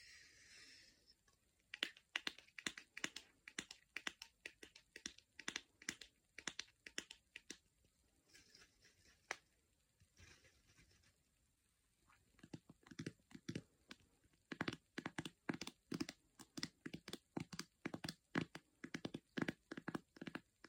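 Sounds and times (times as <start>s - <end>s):
fingertips tapping: 1.7s - 7.7s, 12.2s - 20.6s.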